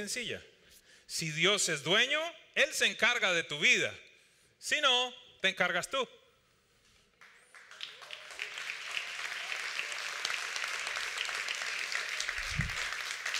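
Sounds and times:
speech: 0.0s - 0.5s, 1.1s - 6.2s
quiet polite golf-style applause: 7.2s - 13.3s.

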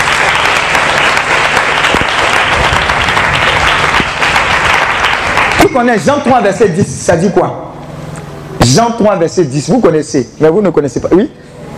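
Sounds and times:
church congregation applauding during a French-language sermon: 0.0s - 6.3s
speech: 5.7s - 7.7s, 8.6s - 11.6s.

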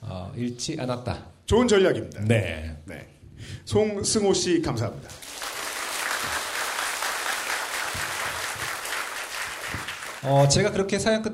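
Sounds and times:
speech: 0.4s - 5.2s, 10.2s - 11.3s
audience applause: 5.1s - 10.3s.

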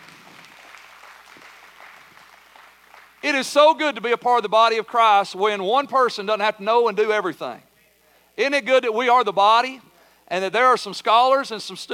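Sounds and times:
audience applause for a guest speaker: 0.0s - 3.2s
speech: 3.2s - 7.7s, 8.4s - 11.9s.

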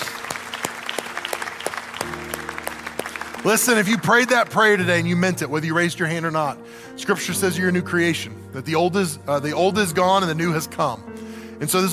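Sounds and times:
audience applause: 0.0s - 5.1s
speech: 3.4s - 11.9s.

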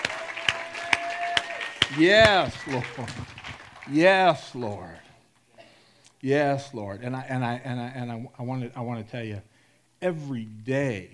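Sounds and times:
audience clapping: 0.0s - 5.1s
speech: 1.9s - 5.1s, 6.2s - 11.1s.

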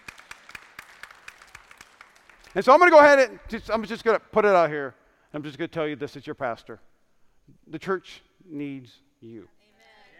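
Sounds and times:
audience clapping in a steady rhythm: 0.0s - 3.3s
speech: 2.6s - 6.9s, 7.5s - 9.6s.

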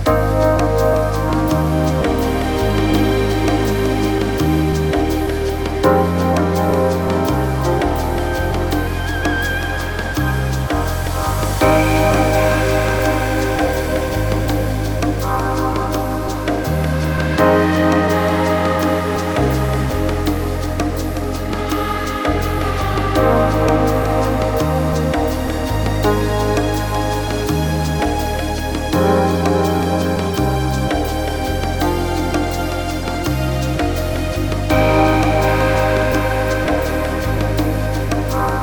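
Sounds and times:
chillout downtempo electronica grooves: 0.0s - 38.6s.

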